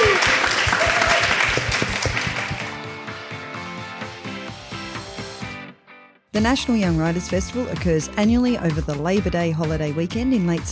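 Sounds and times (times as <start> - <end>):
audience applause: 0.0 - 2.9
speech: 6.4 - 10.7.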